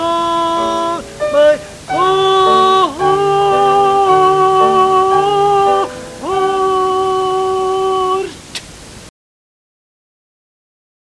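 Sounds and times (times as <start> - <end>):
anthem music: 0.0 - 7.8.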